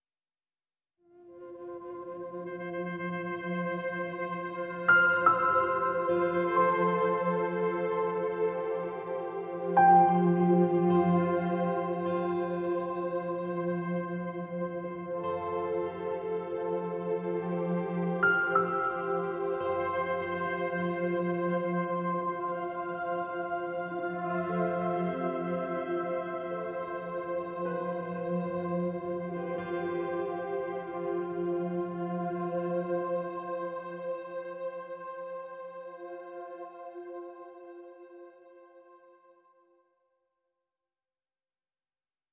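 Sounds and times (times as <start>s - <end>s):
ambient music: 1.8s - 34.4s.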